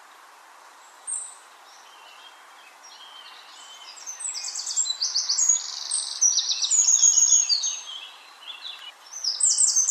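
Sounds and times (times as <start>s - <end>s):
Troglodytes troglodytes Eurasian wren singing: 1.1s - 9.8s.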